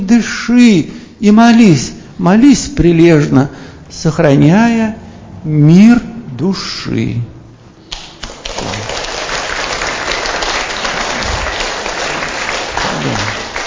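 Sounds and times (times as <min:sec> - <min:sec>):
speech: 0:00.1 - 0:07.4
audience applause after poem reading: 0:08.2 - 0:13.6.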